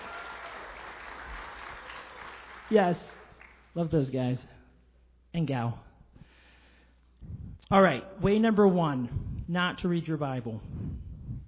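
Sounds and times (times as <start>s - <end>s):
church audience applause: 0.0s - 3.7s
speech: 2.7s - 4.6s, 5.3s - 5.9s, 7.7s - 10.8s.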